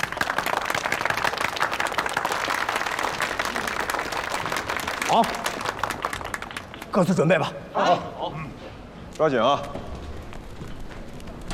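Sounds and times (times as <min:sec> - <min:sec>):
group applause: 0:00.0 - 0:07.5
speech: 0:05.1 - 0:05.4, 0:06.9 - 0:09.9.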